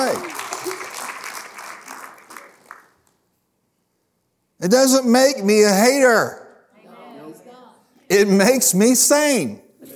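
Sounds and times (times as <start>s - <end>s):
audience applause: 0.0s - 3.2s
speech: 4.6s - 6.4s, 8.1s - 9.6s.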